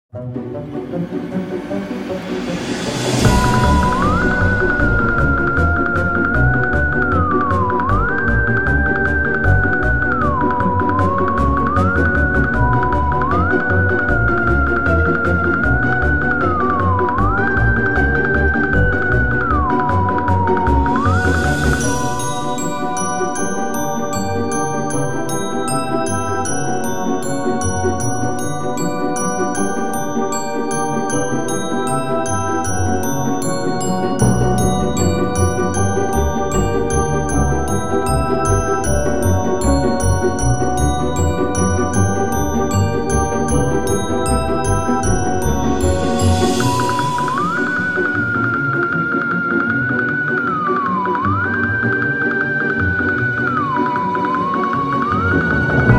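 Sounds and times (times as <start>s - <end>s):
chase music: 0.2s - 55.9s.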